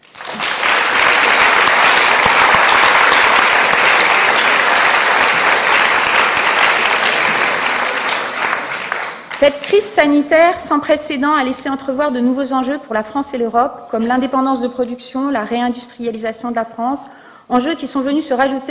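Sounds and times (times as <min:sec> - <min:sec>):
crowd applauding: 0:00.0 - 0:09.5
speech: 0:09.4 - 0:18.6.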